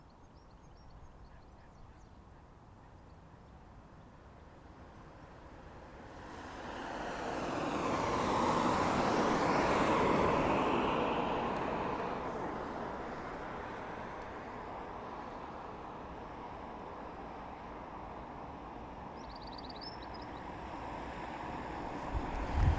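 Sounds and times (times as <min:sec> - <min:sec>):
birds at a bus stop: 0:00.0 - 0:05.4, 0:19.1 - 0:20.5
traffic at a bus stop: 0:00.0 - 0:22.7.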